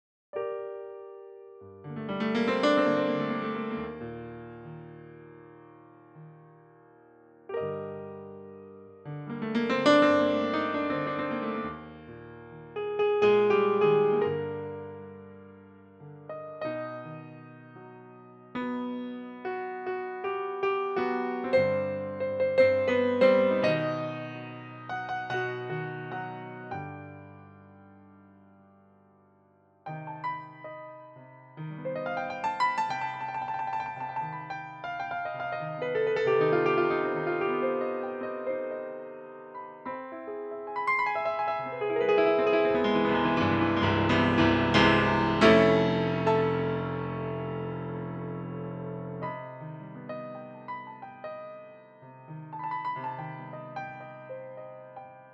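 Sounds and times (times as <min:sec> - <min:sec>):
Steinway piano improvisation: 0:00.4 - 0:28.5, 0:29.8 - 0:55.3.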